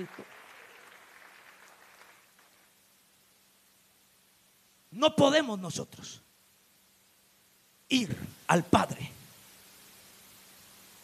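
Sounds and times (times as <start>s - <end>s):
speech: 0.0s - 0.3s, 5.0s - 6.3s, 7.9s - 9.2s
crowd applauding: 0.0s - 2.7s.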